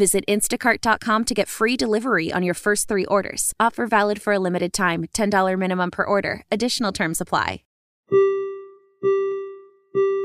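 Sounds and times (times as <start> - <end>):
speech: 0.0 - 8.3, 9.0 - 9.3
monorail door chime: 8.1 - 10.2.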